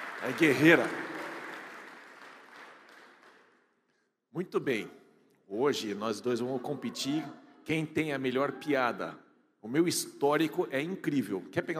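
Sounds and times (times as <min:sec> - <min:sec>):
audience applause for a joke competition: 0:00.0 - 0:03.5
speech: 0:00.2 - 0:01.1, 0:04.4 - 0:11.7.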